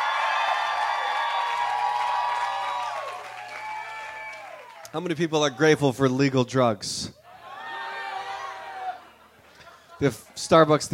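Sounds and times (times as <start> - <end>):
audience hand clapping: 0.0 - 5.3
speech: 4.9 - 7.2, 10.0 - 10.9.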